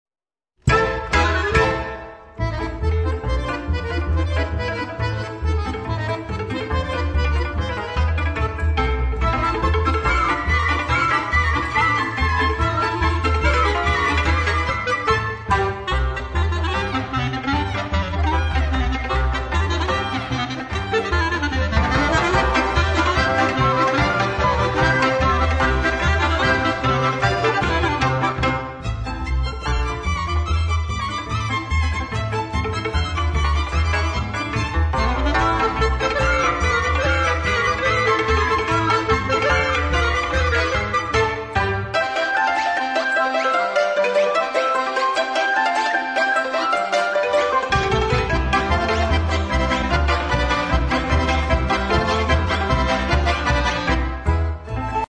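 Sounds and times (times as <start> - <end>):
Ukrainian folk music ensemble playing polka: 0.6 - 55.0.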